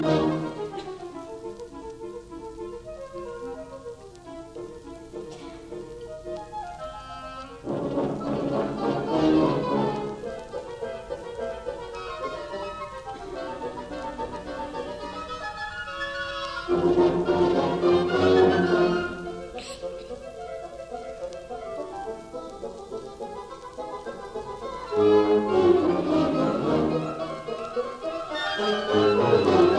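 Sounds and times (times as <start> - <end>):
symphony orchestra playing a quick march: 0.0 - 1.4, 6.9 - 10.2, 10.8 - 19.6, 24.7 - 29.7.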